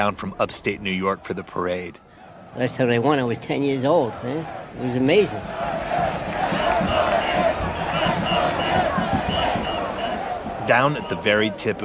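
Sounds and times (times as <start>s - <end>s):
speech: 0.0s - 6.2s, 10.7s - 11.8s
large parade crowd cheering: 0.6s - 11.8s.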